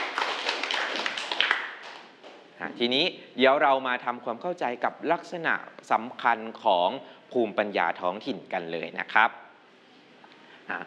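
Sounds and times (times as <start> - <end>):
small group clapping: 0.0 - 2.4
speech: 2.8 - 9.4, 10.7 - 10.8.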